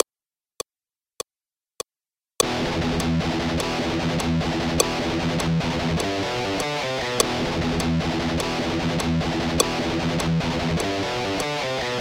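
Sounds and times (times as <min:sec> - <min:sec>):
rhythm guitar playing behind the beat: 0:02.4 - 0:11.9.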